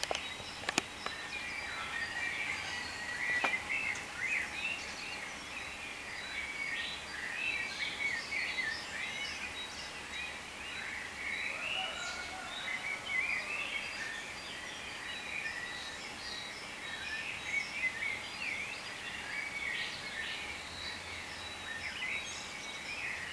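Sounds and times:
sharp clicks: 0:00.0 - 0:01.2
bird chorus chirping: 0:00.0 - 0:23.3.

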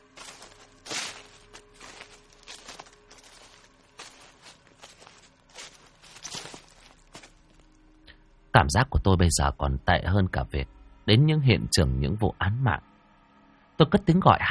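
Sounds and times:
footsteps crunching and rustling on dry leaves: 0:00.0 - 0:07.8
speech: 0:08.6 - 0:12.9, 0:13.8 - 0:14.4.

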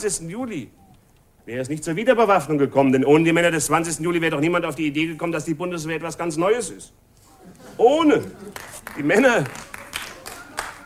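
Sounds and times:
speech: 0:00.0 - 0:00.8, 0:01.5 - 0:09.8
scattered applause from a cabaret show audience: 0:08.4 - 0:10.8.

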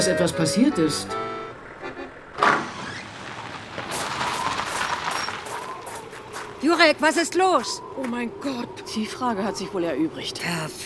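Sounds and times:
speech: 0:00.0 - 0:01.3, 0:06.6 - 0:10.8
car arriving, towing another car: 0:00.0 - 0:06.6.

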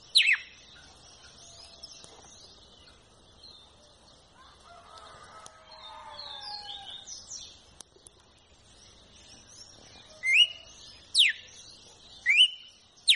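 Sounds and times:
red-cowled cardinal whistled song: 0:00.0 - 0:00.6, 0:10.1 - 0:11.6, 0:12.2 - 0:13.1.

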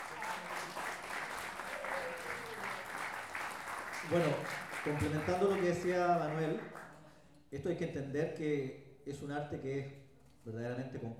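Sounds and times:
audience applause: 0:00.0 - 0:06.9
speech: 0:04.0 - 0:06.8, 0:07.5 - 0:11.1.

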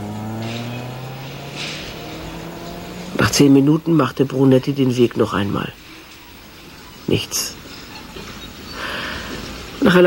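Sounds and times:
car driving past on a street: 0:00.0 - 0:04.2
speech: 0:03.3 - 0:05.8, 0:07.1 - 0:07.6, 0:09.8 - 0:10.0.

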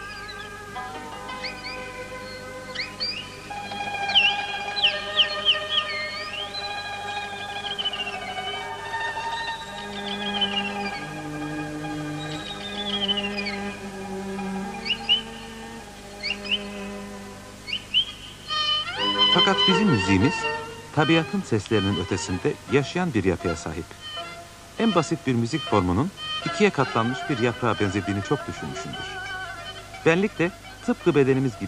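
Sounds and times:
birdsong: 0:00.0 - 0:31.6
speech: 0:19.7 - 0:24.1, 0:24.8 - 0:29.1, 0:30.0 - 0:31.6.

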